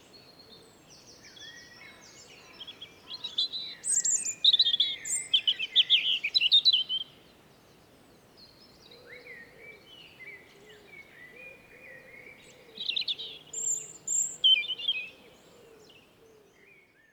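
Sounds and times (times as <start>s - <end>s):
European robin singing: 1.0s - 7.1s, 11.3s - 15.2s.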